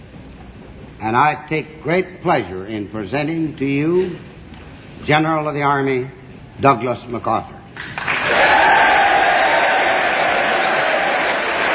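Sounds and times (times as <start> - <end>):
speech: 1.0 - 4.4, 5.0 - 7.9
applause from congress and gallery: 7.9 - 11.7.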